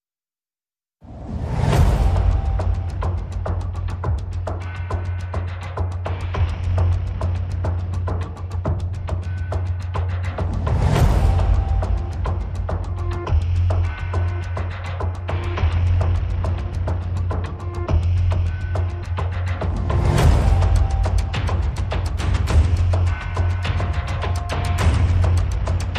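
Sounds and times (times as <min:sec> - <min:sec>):
percussion: 0:01.0 - 0:25.9.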